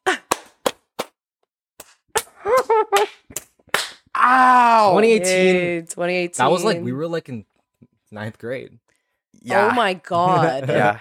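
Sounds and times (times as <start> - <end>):
scattered hand claps: 0.2 - 1.2, 1.8 - 4.1
speech: 4.9 - 7.5, 8.1 - 10.9.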